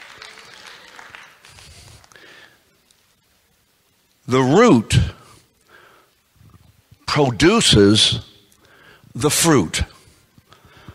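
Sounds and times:
roomful of people clapping: 0.0s - 2.4s
speech: 4.3s - 5.2s, 7.1s - 8.3s, 9.2s - 9.9s.

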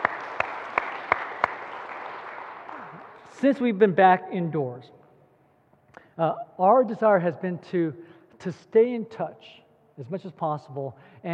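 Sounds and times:
audience applause: 0.0s - 3.3s
sharp evenly spaced claps: 0.0s - 3.4s
speech: 3.4s - 5.0s, 6.2s - 11.3s.

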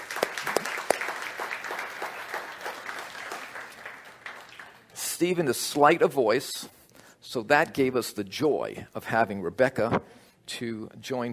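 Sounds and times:
faint applause welcoming singers at an Alpha weekend session: 0.0s - 4.9s
speech: 5.2s - 11.3s.

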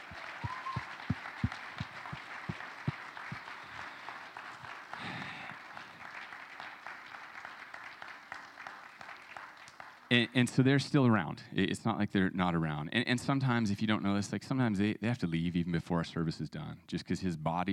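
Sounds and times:
audience applause: 0.0s - 10.2s
speech: 10.1s - 17.7s.

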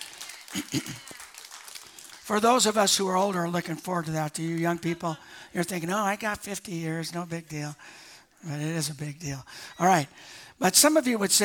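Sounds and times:
audience applause: 0.0s - 2.7s
speech: 0.6s - 1.1s, 2.3s - 11.4s.

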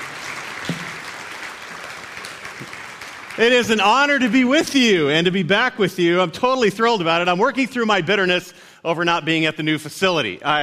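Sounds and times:
audience applause at a Lakeside church gathering: 0.0s - 4.6s
speech: 3.4s - 10.6s.

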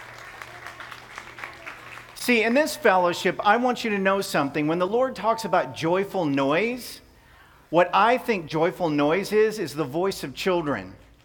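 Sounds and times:
audience applause: 0.0s - 3.4s
speech: 2.3s - 7.0s, 7.7s - 11.0s.

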